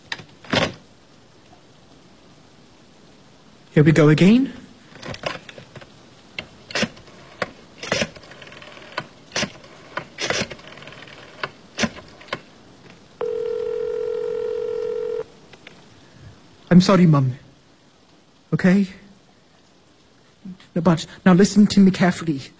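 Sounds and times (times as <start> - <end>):
speech: 3.8 - 4.6, 16.8 - 17.4, 18.6 - 19.0, 20.8 - 22.5
loud steady buzzing telephone dial tone: 13.2 - 15.3.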